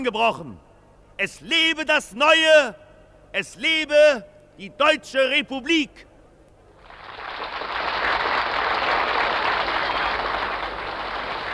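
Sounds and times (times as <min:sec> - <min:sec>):
speech: 0:00.0 - 0:06.1
crowd applause and cheering: 0:06.8 - 0:11.5.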